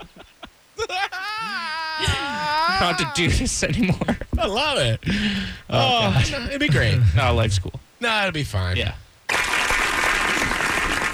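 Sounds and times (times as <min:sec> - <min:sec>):
laughter: 0:00.0 - 0:04.6
speech: 0:02.8 - 0:09.0
soundboard applause sound effect: 0:09.3 - 0:11.1.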